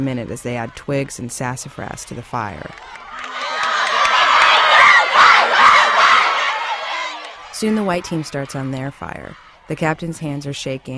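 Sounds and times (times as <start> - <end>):
speech: 0.0 - 3.3, 7.6 - 10.9
children cheering and shouting: 2.7 - 9.6.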